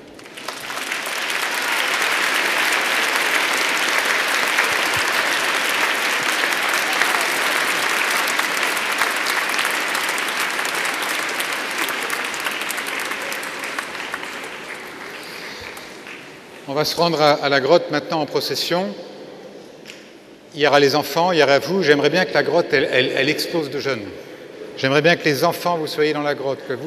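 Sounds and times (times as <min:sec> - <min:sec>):
audience applause: 0:00.0 - 0:16.8
speech: 0:16.8 - 0:19.1, 0:20.6 - 0:26.8.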